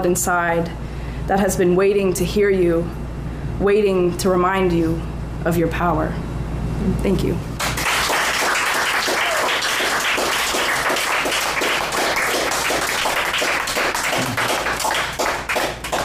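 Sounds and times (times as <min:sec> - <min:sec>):
speech: 0:00.0 - 0:03.0, 0:03.6 - 0:07.5
audience applause at a poetry reading: 0:07.6 - 0:16.0.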